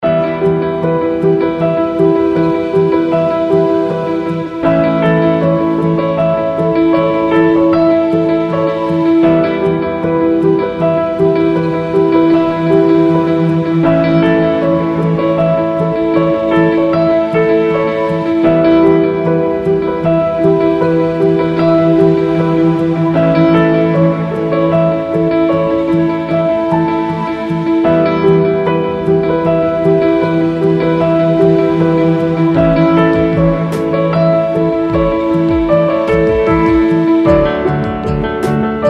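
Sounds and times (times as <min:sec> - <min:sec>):
orchestral keys: 0:00.3 - 0:38.8.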